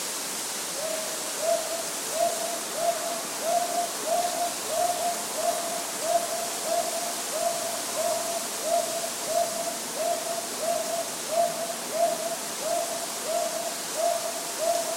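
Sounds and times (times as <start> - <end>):
hawk-owl hooting: 0.7 - 14.9.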